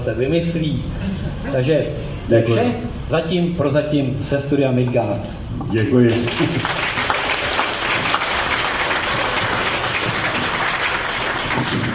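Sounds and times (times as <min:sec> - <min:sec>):
speech: 0:00.0 - 0:06.9
audience applause: 0:06.1 - 0:11.9.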